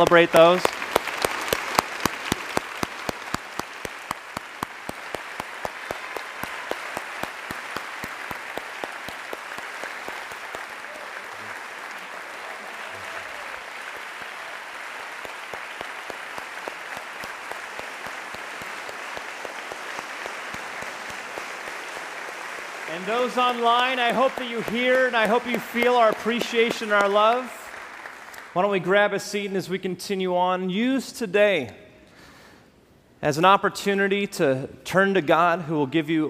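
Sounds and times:
speech: 0.0s - 0.8s, 23.6s - 27.6s, 28.5s - 31.8s, 33.2s - 36.2s
large crowd clapping indoors: 0.0s - 29.0s.

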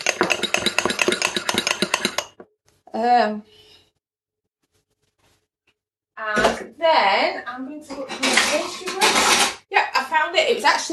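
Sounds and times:
fork whisking a cracked egg in a bowl: 0.0s - 2.5s
speech: 3.0s - 3.7s, 6.2s - 10.9s.

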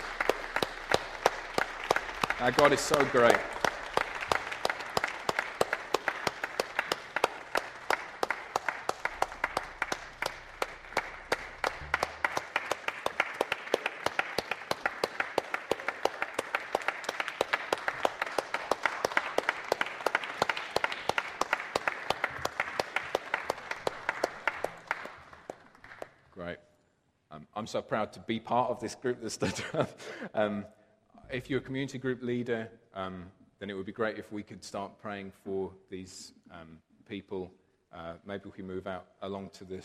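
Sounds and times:
crowd applause: 0.0s - 26.2s
speech: 2.4s - 3.6s, 27.7s - 36.4s, 37.1s - 39.8s.

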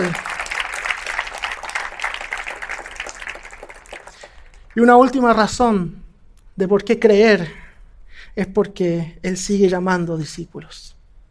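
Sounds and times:
audience applauding: 0.0s - 4.9s
speech: 4.8s - 6.0s, 6.6s - 7.6s, 8.3s - 11.0s.

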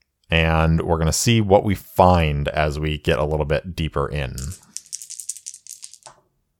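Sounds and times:
speech: 0.5s - 4.7s
dice rolling: 4.3s - 6.2s.

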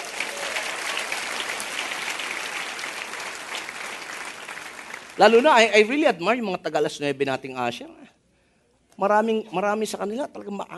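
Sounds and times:
church congregation applauding the ushers: 0.0s - 5.9s
speech: 5.2s - 8.1s, 9.0s - 10.7s.

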